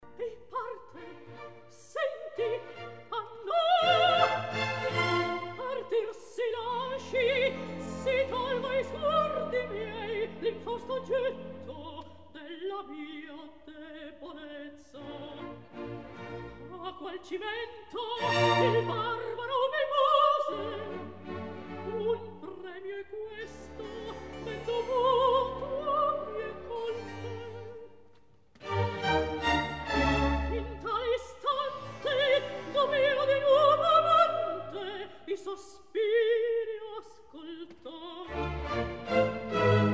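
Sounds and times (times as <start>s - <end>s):
recitative singing: 0.0s - 28.0s, 28.6s - 39.9s.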